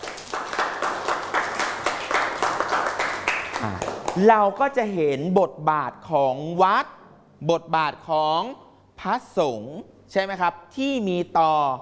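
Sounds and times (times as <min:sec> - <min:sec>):
applause: 0:00.0 - 0:04.3
speech: 0:03.6 - 0:11.8.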